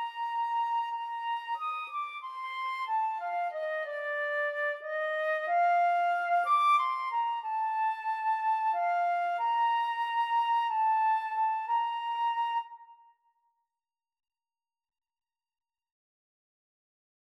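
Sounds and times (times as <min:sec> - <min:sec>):
two flutes playing karaoke backing: 0:00.0 - 0:13.0.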